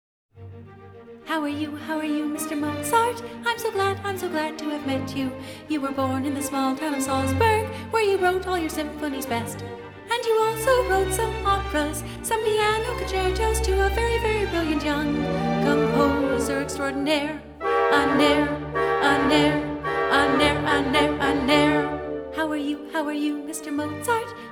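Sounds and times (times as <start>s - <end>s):
vocal symphony arrangement: 1.2s - 24.5s.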